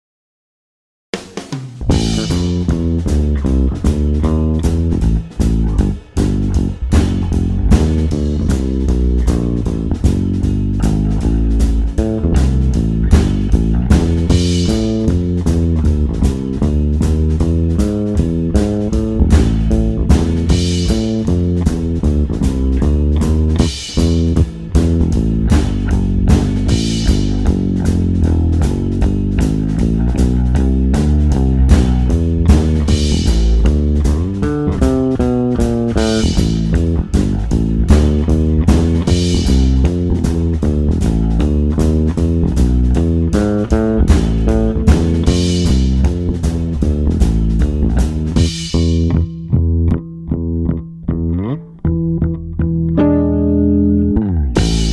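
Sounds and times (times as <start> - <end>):
bass guitar recording: 1.2 - 54.9.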